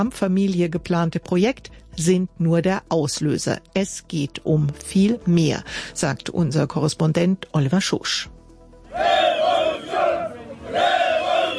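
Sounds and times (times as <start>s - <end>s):
speech: 0.0s - 8.4s
crowd of protesters chanting at a demonstration: 8.9s - 11.5s.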